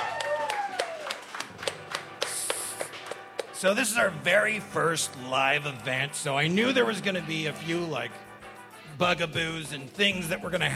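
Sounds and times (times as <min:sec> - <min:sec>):
audience applause: 0:00.0 - 0:03.4
speech: 0:03.6 - 0:08.2, 0:09.0 - 0:10.7.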